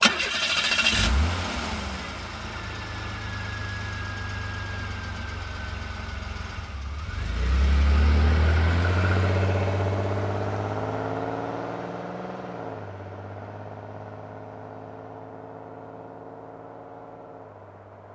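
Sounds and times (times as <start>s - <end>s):
car: 0.0s - 18.1s.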